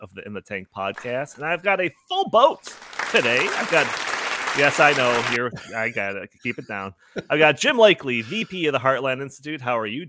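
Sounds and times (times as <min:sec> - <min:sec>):
speech: 0:00.0 - 0:10.0
looped applause sound effect: 0:02.7 - 0:05.4.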